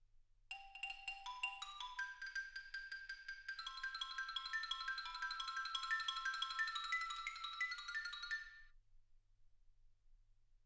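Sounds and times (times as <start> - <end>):
xylophone: 0.5 - 8.7.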